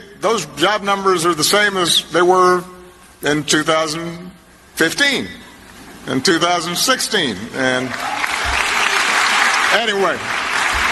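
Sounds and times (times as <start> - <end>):
speech: 0.2 - 5.4, 6.0 - 8.4, 9.7 - 10.4
audience applauding: 7.8 - 10.9.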